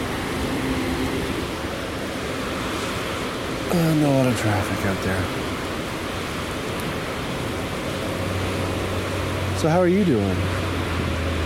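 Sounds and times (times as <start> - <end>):
heavy rain heard from inside a car: 0.0 - 11.4
speech: 3.7 - 5.4, 9.6 - 10.6.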